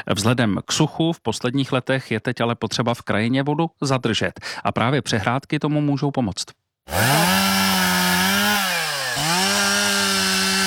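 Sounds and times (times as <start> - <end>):
speech: 0.0 - 7.6
volunteers cutting pieces of wood: 6.9 - 10.6.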